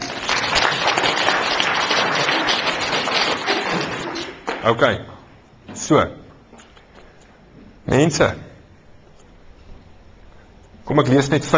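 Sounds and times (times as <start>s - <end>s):
crowd clapping: 0.0s - 4.8s
speech: 4.6s - 5.2s, 5.8s - 6.2s, 7.9s - 8.5s, 10.9s - 11.5s.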